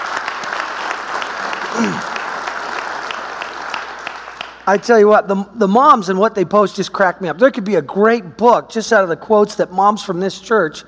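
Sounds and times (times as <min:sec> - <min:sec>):
audience applause: 0:00.0 - 0:04.6
speech: 0:01.8 - 0:02.1, 0:04.7 - 0:10.8.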